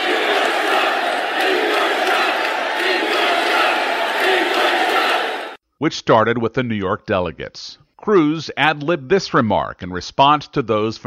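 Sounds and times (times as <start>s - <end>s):
applause: 0.0s - 5.6s
convention crowd booing: 0.0s - 5.6s
speech: 5.8s - 11.0s.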